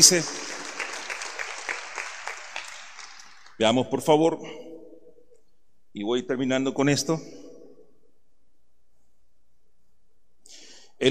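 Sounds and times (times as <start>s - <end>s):
speech: 0.0s - 0.5s, 3.6s - 4.7s, 6.0s - 7.4s
audience applause: 0.0s - 3.6s.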